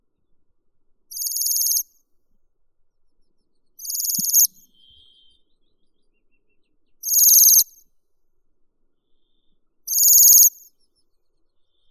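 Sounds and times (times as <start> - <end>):
Bohemian waxwing Bombycilla garrulus calling: 3.8 - 5.2, 7.0 - 7.7, 9.9 - 10.5.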